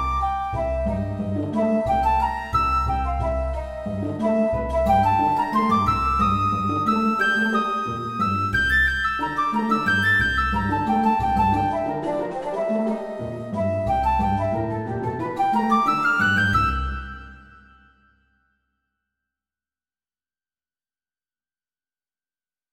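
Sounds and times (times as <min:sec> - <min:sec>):
flute and violoncello duet: 0:00.0 - 0:17.7.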